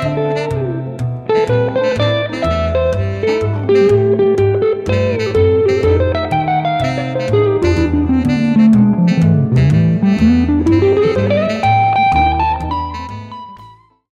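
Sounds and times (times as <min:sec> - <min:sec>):
jazz guitar solo in A minor: 0:00.0 - 0:13.9.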